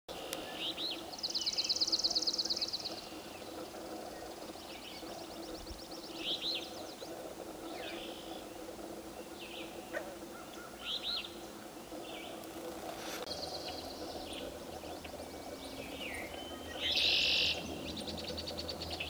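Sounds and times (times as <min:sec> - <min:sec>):
swamp sparrow Melospiza georgiana trilling song: 0:00.2 - 0:19.0.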